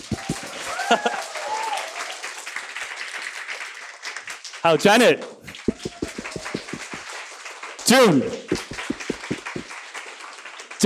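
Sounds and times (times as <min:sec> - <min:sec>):
audience applause: 0:00.0 - 0:04.4, 0:05.5 - 0:07.7, 0:08.5 - 0:10.8
people whooping and cheering: 0:00.3 - 0:02.2
speech: 0:00.9 - 0:01.2, 0:04.6 - 0:05.4, 0:07.9 - 0:08.6.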